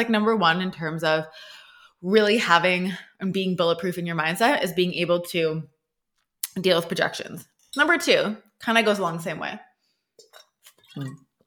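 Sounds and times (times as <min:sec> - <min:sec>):
speech: 0:00.0 - 0:05.7, 0:06.6 - 0:09.7, 0:11.0 - 0:11.2
glass clinking: 0:10.2 - 0:11.4
sipping water: 0:10.2 - 0:11.4.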